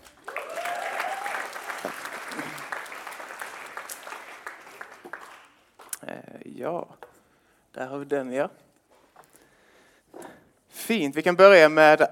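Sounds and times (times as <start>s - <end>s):
crowd applause: 0.0s - 5.6s
speech: 6.6s - 7.0s, 7.8s - 8.6s, 10.9s - 12.1s.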